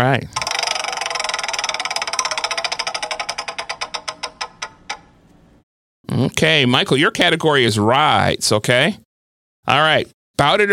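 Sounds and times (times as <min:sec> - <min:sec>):
speech: 0:00.0 - 0:00.4, 0:06.2 - 0:09.0, 0:09.6 - 0:10.7
prize wheel spinning: 0:00.4 - 0:05.3.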